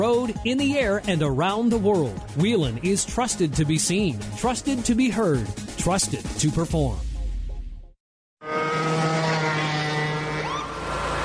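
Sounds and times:
speech: 0:00.0 - 0:07.1
small lawnmower engine roaring at full throttle: 0:08.4 - 0:11.2.

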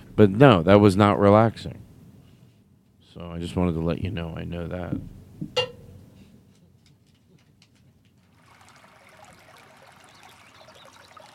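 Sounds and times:
speech: 0:00.2 - 0:01.8, 0:03.2 - 0:05.7
trickling stream of water: 0:08.2 - 0:11.3.

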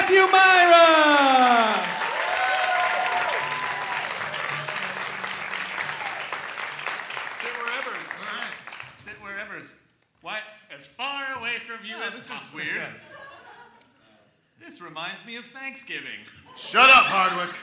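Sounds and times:
crowd applause for performers at a live comedy show at Largo: 0:00.0 - 0:09.0
laughter: 0:11.9 - 0:14.1
speech: 0:14.8 - 0:17.6.

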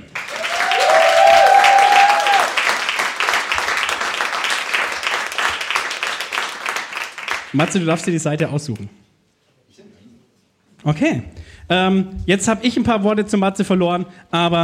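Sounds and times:
loud dense crowd applause: 0:00.0 - 0:07.9
whoops and cheers: 0:00.2 - 0:02.7
speech: 0:07.6 - 0:09.0, 0:10.8 - 0:14.6.

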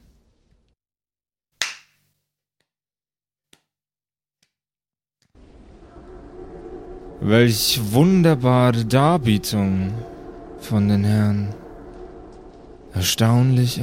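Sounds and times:
hands clapping: 0:01.6 - 0:02.0
speech: 0:07.2 - 0:11.6, 0:13.0 - 0:13.8.

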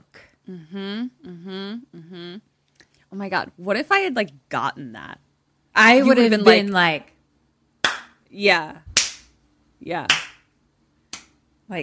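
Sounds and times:
short voiced vocal sound with falling pitch: 0:00.4 - 0:02.5
speech: 0:00.5 - 0:02.5, 0:03.1 - 0:05.2, 0:05.8 - 0:07.1, 0:08.3 - 0:08.8, 0:09.8 - 0:10.2
hand claps: 0:07.8 - 0:08.2, 0:08.9 - 0:09.3, 0:10.1 - 0:10.5, 0:11.1 - 0:11.4.

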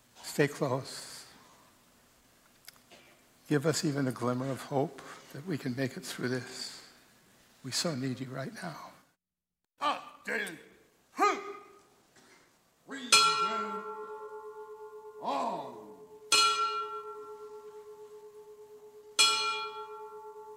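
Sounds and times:
speech: 0:00.4 - 0:01.1, 0:03.5 - 0:06.7, 0:07.6 - 0:08.9, 0:10.3 - 0:10.7
memorial bell tolling: 0:13.0 - 0:20.5.

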